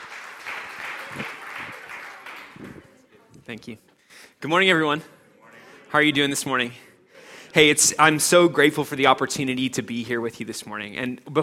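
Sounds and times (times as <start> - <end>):
audience clapping greeting a guest speaker: 0.0 - 3.0
speech: 3.5 - 5.2, 5.9 - 6.9, 7.6 - 11.4.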